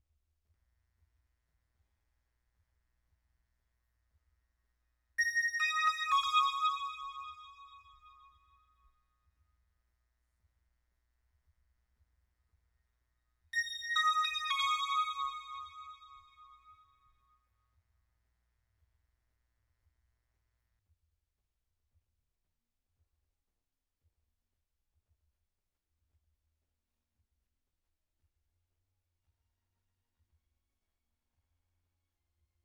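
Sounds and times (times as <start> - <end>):
synth bells: 5.2 - 8.2, 13.6 - 16.8.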